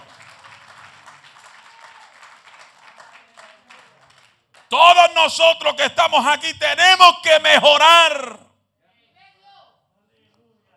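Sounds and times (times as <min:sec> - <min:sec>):
large crowd applauding: 0:00.0 - 0:06.4
speech: 0:04.7 - 0:08.4.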